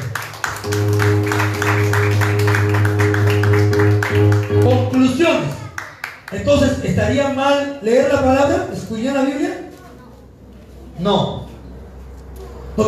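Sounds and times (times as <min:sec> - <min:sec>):
audience clapping: 0:00.0 - 0:06.7
speech: 0:06.5 - 0:09.6, 0:11.0 - 0:11.4.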